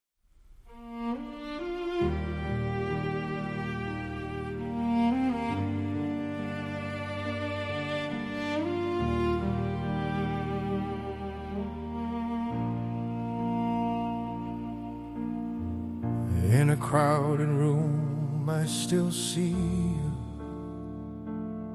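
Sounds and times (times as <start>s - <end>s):
heartbreaking love ballad: 0.8s - 21.7s.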